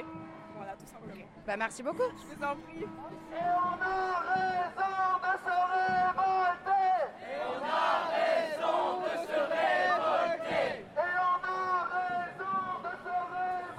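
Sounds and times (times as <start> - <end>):
crowd chanting and shouting at a public service protest march: 0.0 - 13.7
speech: 0.8 - 6.7.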